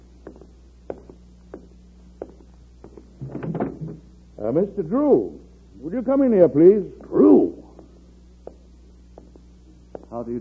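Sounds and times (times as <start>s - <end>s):
door being opened: 3.2s - 4.1s
speech: 4.4s - 7.2s, 10.2s - 10.3s.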